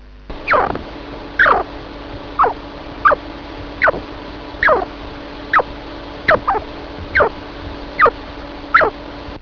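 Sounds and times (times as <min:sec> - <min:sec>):
sleepy chinchilla: 0:00.4 - 0:01.7, 0:02.4 - 0:03.2, 0:03.8 - 0:04.0, 0:04.6 - 0:04.9, 0:06.3 - 0:07.4, 0:08.0 - 0:09.0.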